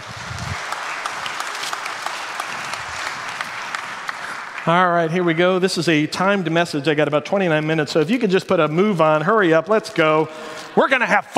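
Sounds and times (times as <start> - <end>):
audience round of applause: 0.0 - 5.4
speech: 4.7 - 11.3.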